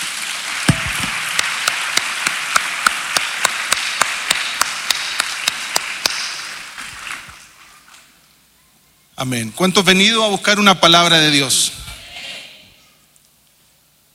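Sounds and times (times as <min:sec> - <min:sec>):
audience applause: 0:00.0 - 0:07.4
speech: 0:09.2 - 0:11.8.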